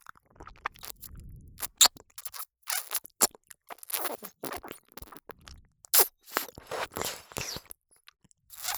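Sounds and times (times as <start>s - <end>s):
ASMR ear licking in right ear: 0.8s - 5.2s, 6.0s - 7.7s, 8.5s - 8.7s.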